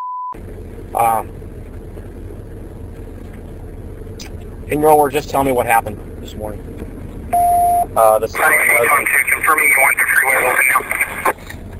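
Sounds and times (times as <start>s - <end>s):
speech: 0.3s - 1.4s, 4.2s - 11.2s
radio playing in the room: 8.2s - 11.4s.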